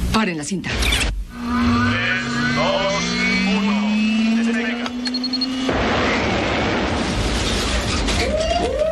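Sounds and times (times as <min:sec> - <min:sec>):
speech: 0:00.2 - 0:01.1
steady tone: 0:01.1 - 0:06.9
crash-test collision crash: 0:05.6 - 0:08.8.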